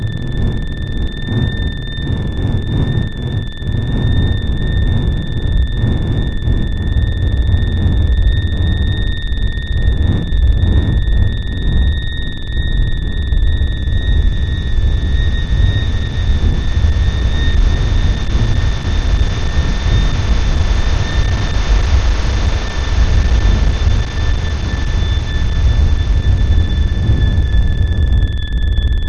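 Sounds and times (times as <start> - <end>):
combat drone: 0.0 - 29.0.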